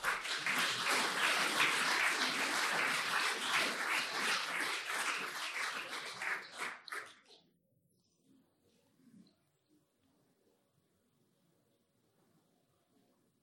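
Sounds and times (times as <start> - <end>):
audience applause after a project presentation: 0.0 - 7.3.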